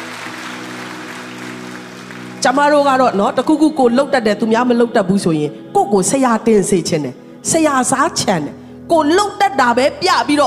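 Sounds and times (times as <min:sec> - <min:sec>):
congregation clapping during a Sunday church service: 0:00.0 - 0:03.0
speech: 0:02.4 - 0:10.4.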